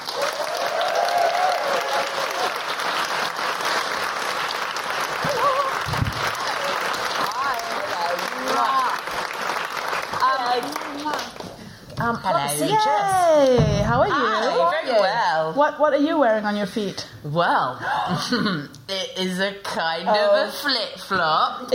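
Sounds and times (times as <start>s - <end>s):
audience applauding for a comedian: 0.0s - 11.7s
speech: 12.1s - 21.7s.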